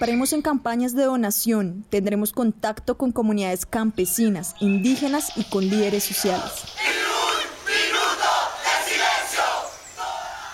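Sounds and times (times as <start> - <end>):
speech: 0.0 - 7.0
protest crowd shouting slogans: 5.9 - 10.5.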